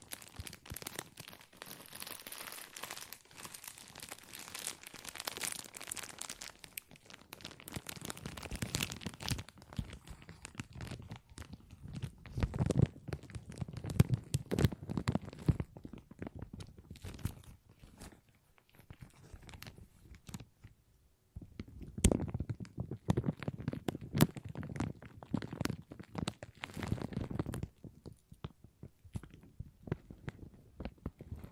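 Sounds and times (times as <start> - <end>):
plastic crinkling: 0.0 - 20.7, 21.5 - 31.5.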